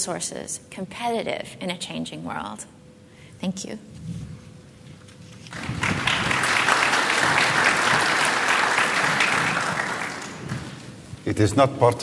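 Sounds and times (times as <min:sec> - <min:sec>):
speech: 0:00.0 - 0:02.8, 0:03.4 - 0:04.3, 0:11.3 - 0:12.0
audience applause after a speech: 0:05.4 - 0:11.0.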